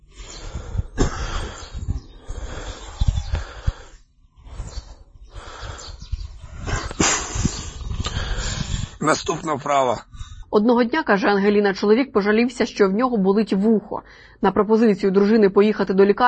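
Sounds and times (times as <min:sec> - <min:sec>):
man breathing heavily during exercise: 0:00.0 - 0:09.0, 0:10.1 - 0:10.5
speech: 0:09.1 - 0:16.2.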